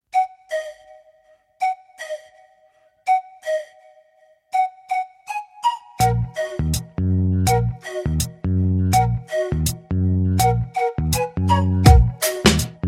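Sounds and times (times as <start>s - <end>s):
flute: 0.1s - 12.8s
drums: 11.9s - 12.8s.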